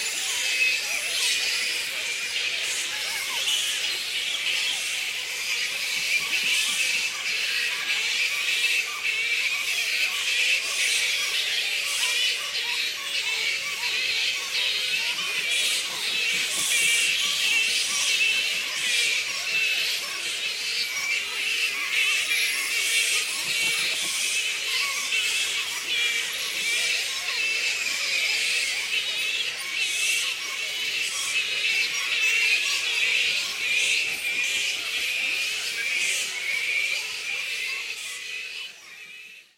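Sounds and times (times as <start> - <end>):
black fruit bat Pteropus alecto colony squeaking: 0.0 - 39.5.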